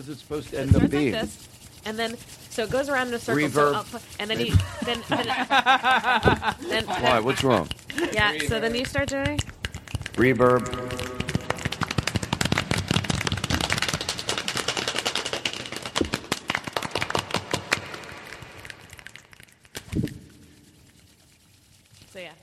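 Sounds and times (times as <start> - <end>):
speech: 0.0 - 9.5, 10.2 - 10.9
laughter: 3.2 - 8.5
group imitating the start of a rainstorm with claps and snaps: 7.4 - 20.2.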